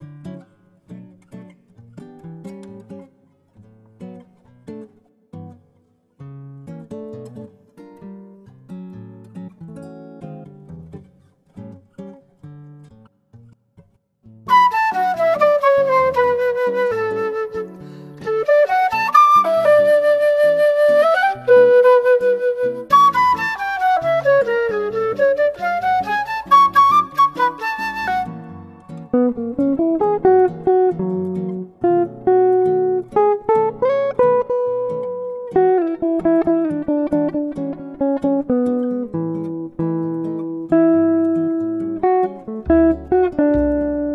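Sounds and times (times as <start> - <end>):
cheerful morning jazz: 14.5 - 44.1.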